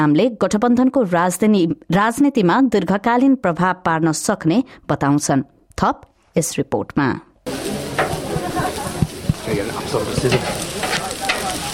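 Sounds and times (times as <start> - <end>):
speech: 0.0 - 7.7, 9.5 - 10.6
democracy sausages sizzling as election volunteers in Australia cook them: 7.5 - 11.7.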